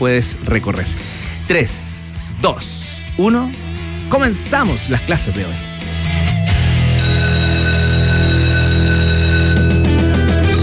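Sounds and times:
speech: 0.0s - 6.4s
school bell ringing: 7.0s - 10.1s.

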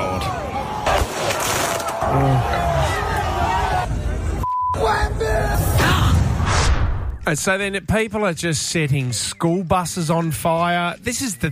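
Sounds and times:
large street crowd shouting and cheering in celebration: 0.0s - 6.5s
speech: 2.1s - 2.6s, 7.3s - 11.5s.

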